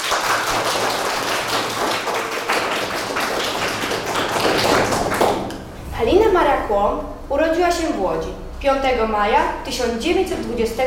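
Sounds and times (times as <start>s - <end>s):
audience applause: 0.0s - 5.6s
speech: 6.0s - 10.8s.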